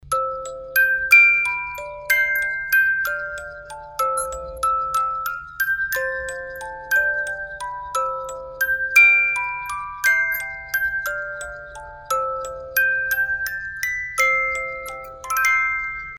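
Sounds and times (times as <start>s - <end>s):
music box folk tune melody: 0.0s - 16.1s.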